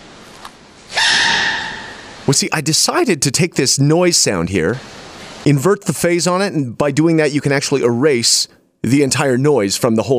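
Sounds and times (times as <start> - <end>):
panda sneezing: 0.9 - 2.1
speech: 2.3 - 10.1.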